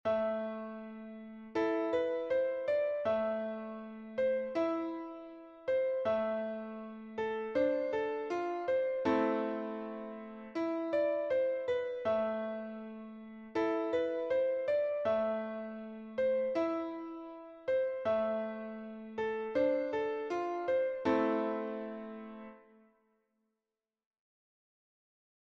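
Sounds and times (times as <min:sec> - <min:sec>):
piano: 0:00.0 - 0:23.0.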